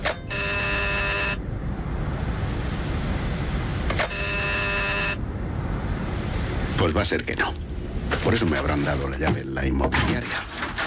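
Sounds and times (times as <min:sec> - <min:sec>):
hiss: 0:00.0 - 0:10.7
doorbell buzzing at number 72 Calle Princesa: 0:00.2 - 0:01.4, 0:04.0 - 0:05.2
speech: 0:06.8 - 0:10.7.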